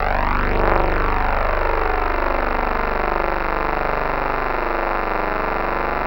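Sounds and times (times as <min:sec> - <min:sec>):
pulsing drone: 0:00.0 - 0:06.0.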